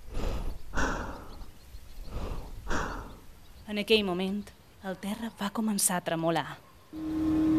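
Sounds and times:
rapid heavy breathing: 0.0s - 3.3s
speech: 3.7s - 7.4s.

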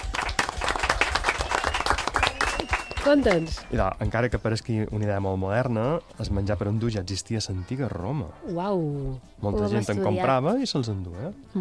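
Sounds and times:
applause for a contestant's correct quiz answer: 0.0s - 3.8s
speech: 3.1s - 11.5s.

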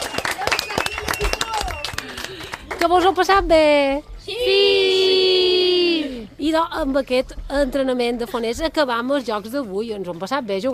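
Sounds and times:
audience applause: 0.0s - 3.0s
speech: 2.8s - 5.1s, 6.4s - 10.7s
people calling out: 4.3s - 6.4s.

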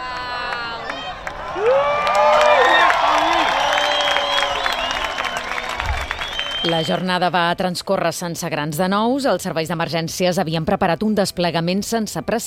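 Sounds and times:
people whooping: 0.0s - 7.0s
scattered clapping: 0.0s - 7.1s
crowd cheering at eclipse: 0.0s - 7.2s
speech: 6.7s - 12.4s.

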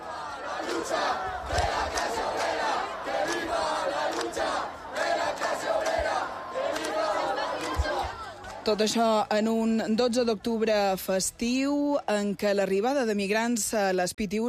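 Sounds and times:
protest camp crowd shouting and chanting: 0.0s - 9.4s
speech: 0.8s - 2.2s, 8.7s - 14.4s
thumps and claps: 1.5s - 2.6s, 3.2s - 4.5s, 5.3s - 8.6s.

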